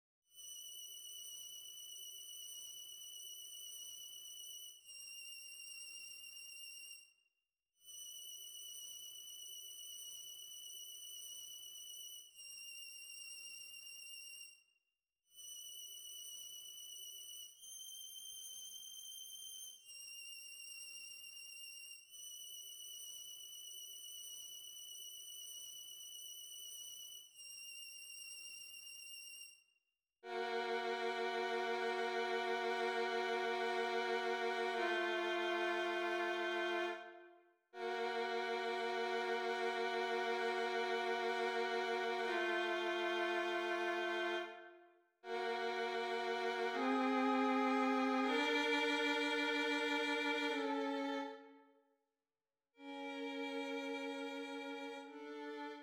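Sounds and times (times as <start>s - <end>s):
violin: 30.3s - 37.2s, 37.8s - 51.6s, 52.8s - 55.8s.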